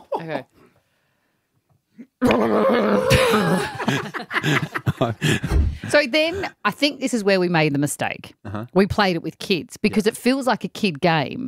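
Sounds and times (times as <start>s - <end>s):
speech: 0.2s - 0.6s, 2.0s - 11.4s
person imitating horse trapped in plastic bag: 2.0s - 3.5s, 8.5s - 8.7s
laughter: 3.1s - 6.6s.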